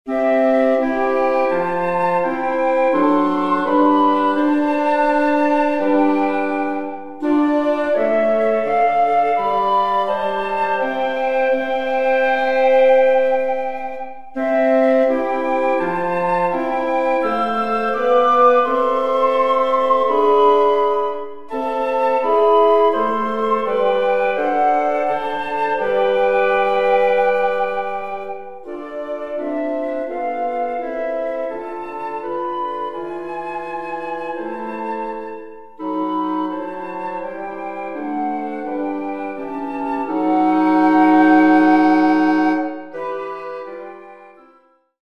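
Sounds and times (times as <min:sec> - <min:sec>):
woodwind quartet playing: 0:00.1 - 0:45.0.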